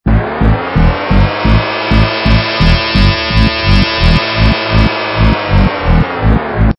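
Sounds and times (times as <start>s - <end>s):
musical stinger: 0.1s - 6.7s.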